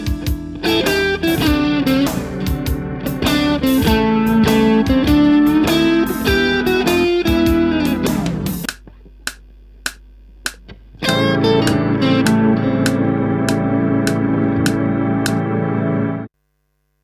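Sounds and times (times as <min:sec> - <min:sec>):
blues etude: 0:00.5 - 0:08.7, 0:11.0 - 0:16.2.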